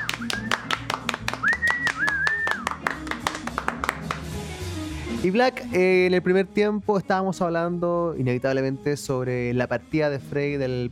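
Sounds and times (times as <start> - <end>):
applause: 0.0 - 4.4
speech: 5.2 - 10.9.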